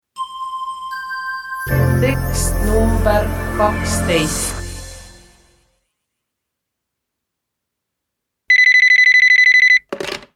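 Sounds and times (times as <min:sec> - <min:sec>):
speech: 0:01.7 - 0:04.6
telephone ringing with rapid electronic trilling: 0:08.5 - 0:09.8.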